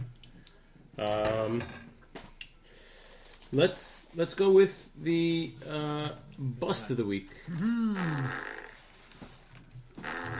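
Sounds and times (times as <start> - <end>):
speech: 1.0 - 1.8, 3.5 - 8.6
double fart: 7.6 - 9.3, 9.9 - 10.3.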